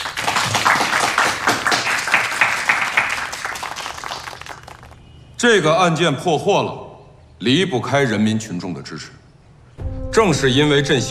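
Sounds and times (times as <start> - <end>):
audience applause: 0.0 - 5.0
speech: 5.4 - 6.8, 7.4 - 9.2, 10.1 - 11.0.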